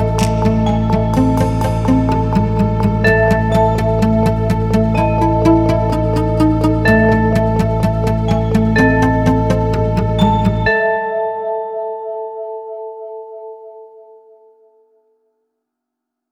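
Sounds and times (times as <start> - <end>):
tension music: 0.0 - 12.6.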